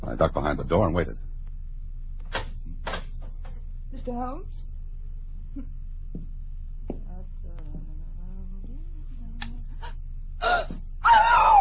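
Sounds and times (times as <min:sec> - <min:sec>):
speech: 0:00.1 - 0:01.3, 0:04.0 - 0:04.6, 0:05.6 - 0:06.3, 0:10.4 - 0:11.4
woman screaming: 0:10.4 - 0:11.5.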